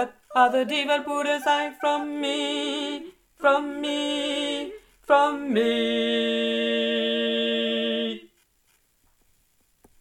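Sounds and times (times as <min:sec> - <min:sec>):
tenors singing: 0:00.0 - 0:08.3.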